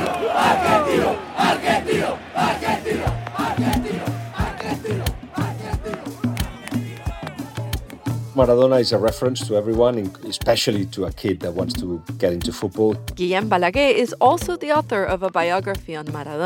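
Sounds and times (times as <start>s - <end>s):
stadium crowd cheering wildly: 0.0s - 8.9s
speech: 8.4s - 16.4s.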